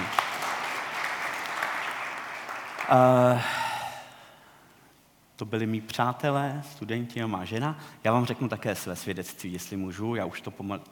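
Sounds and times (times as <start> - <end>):
audience applause: 0.0 - 3.4
speech: 2.9 - 3.6, 5.4 - 10.9.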